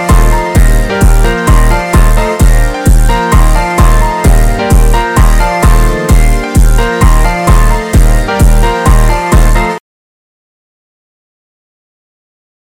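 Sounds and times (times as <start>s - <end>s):
instrumental music: 0.0s - 9.8s.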